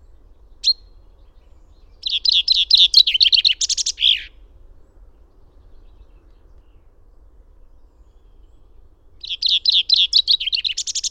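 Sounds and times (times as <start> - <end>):
finch singing: 0.5 - 4.4, 9.2 - 11.0.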